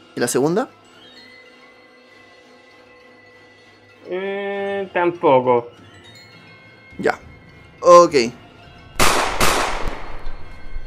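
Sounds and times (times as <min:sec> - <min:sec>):
speech: 0:00.2 - 0:00.8, 0:04.1 - 0:04.3, 0:04.9 - 0:05.8, 0:07.0 - 0:08.4
shotgun blast sound effect: 0:09.0 - 0:10.4.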